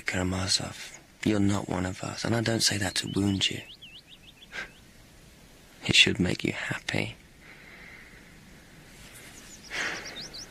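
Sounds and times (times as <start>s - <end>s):
birds chirping: 0.0s - 10.4s
speech: 0.1s - 3.8s, 5.9s - 7.2s
soft breathy rush: 7.4s - 10.4s.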